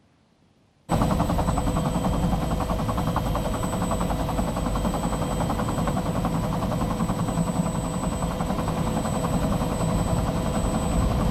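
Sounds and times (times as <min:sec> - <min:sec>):
military helicopter flying over a town: 0:00.9 - 0:11.2.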